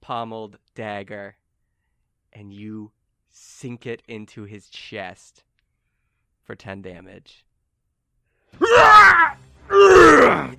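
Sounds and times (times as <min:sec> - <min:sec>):
speech: 0:00.1 - 0:01.4, 0:02.3 - 0:05.5, 0:06.4 - 0:07.5, 0:08.5 - 0:10.5
gasp: 0:01.6 - 0:02.1, 0:05.6 - 0:06.3
voiced booming screams of pain: 0:08.6 - 0:10.5.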